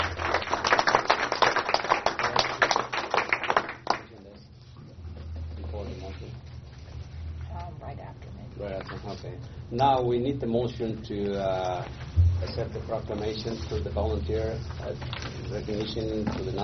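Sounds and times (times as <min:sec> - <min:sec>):
round of applause: 0:00.0 - 0:04.2
speech: 0:09.3 - 0:16.6.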